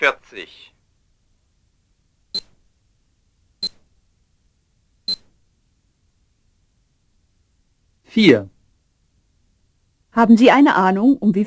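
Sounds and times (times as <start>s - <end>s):
speech: 0.0s - 0.8s, 8.2s - 8.5s, 10.2s - 11.4s
German telephone time announcement beeps: 5.1s - 5.3s.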